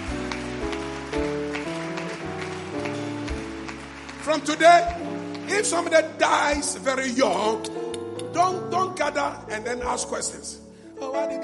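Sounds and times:
crowd clapping along in a steady rhythm: 0.0s - 8.4s
sustained keyboard or organ chords: 0.0s - 11.4s
speech: 4.3s - 7.8s, 8.4s - 11.4s.

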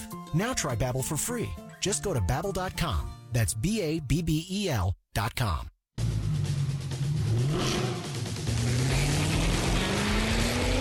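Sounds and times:
speech: 0.3s - 5.7s
sports car engine revving while accelerating: 6.0s - 10.7s.

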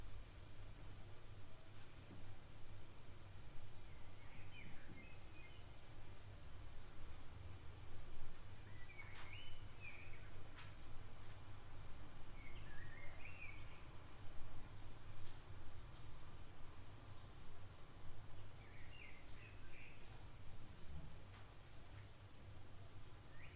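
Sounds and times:
low hiss: 0.0s - 23.5s
pet bird singing: 3.8s - 5.8s, 8.6s - 10.4s, 12.4s - 13.9s, 18.4s - 20.1s, 23.3s - 23.5s.

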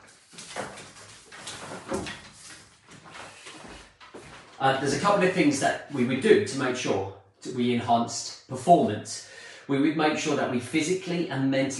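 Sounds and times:
window being opened by hand, rattling and scraping: 0.0s - 5.1s
speech: 4.6s - 11.7s.

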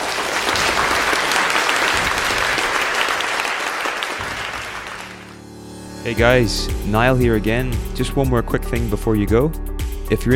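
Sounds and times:
lecture audience applause at the end of a psychology talk: 0.0s - 5.4s
speech: 6.0s - 10.3s.

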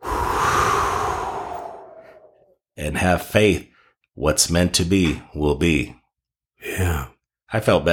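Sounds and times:
deep breath and exhale: 0.0s - 2.6s
speech: 2.8s - 6.0s, 6.6s - 7.9s.

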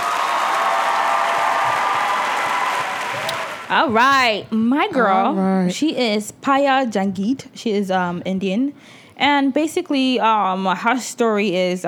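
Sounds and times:
clapping: 0.0s - 3.7s
cheering: 0.0s - 3.8s
speech: 3.7s - 11.8s.

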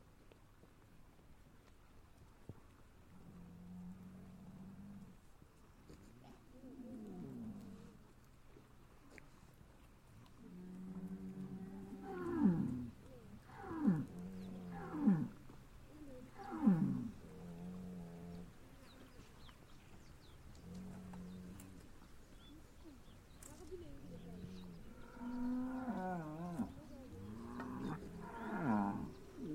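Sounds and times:
faint low hum: 0.2s - 29.5s
cows mooing: 10.8s - 12.8s, 13.4s - 15.3s, 16.3s - 18.5s, 24.4s - 29.5s.

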